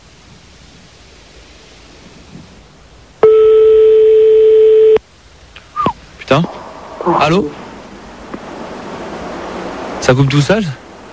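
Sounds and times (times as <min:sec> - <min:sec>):
telephone keypad tones: 0:03.2 - 0:05.0
speech: 0:06.3 - 0:07.6, 0:10.1 - 0:10.8.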